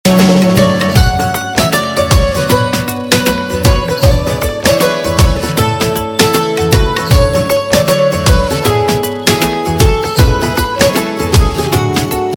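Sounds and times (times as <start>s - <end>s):
instrumental tone: 0.1s - 12.3s.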